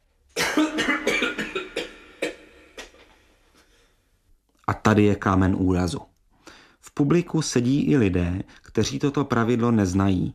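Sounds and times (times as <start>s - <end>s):
audience members coughing between movements: 0.4s - 3.0s
speech: 4.9s - 6.1s, 7.0s - 10.3s.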